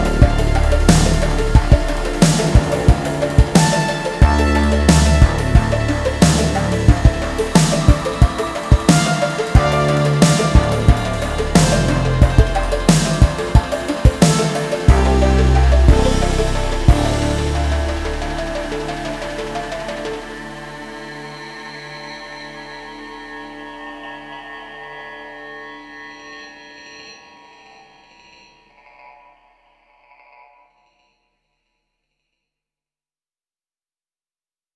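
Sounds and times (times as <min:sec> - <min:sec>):
granular rainstorm: 0:00.0 - 0:22.3.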